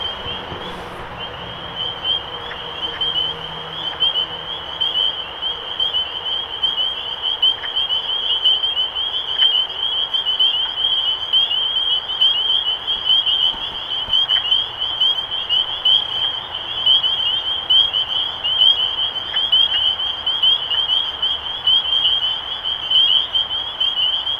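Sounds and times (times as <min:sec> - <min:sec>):
spring peeper chorus: 0:00.0 - 0:24.3.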